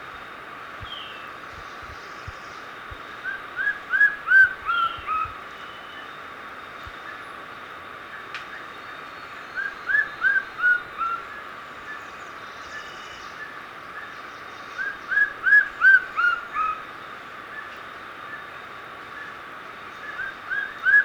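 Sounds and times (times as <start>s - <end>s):
White-streaked Antvireo calling in South America: 0.8s - 6.1s, 9.5s - 16.9s, 19.9s - 21.0s.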